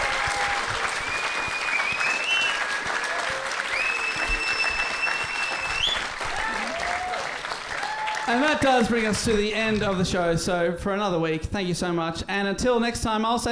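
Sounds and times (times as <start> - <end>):
live audience applause: 0.0 - 10.0
faint whistles: 1.0 - 3.0, 3.7 - 6.1
speech: 8.3 - 13.4.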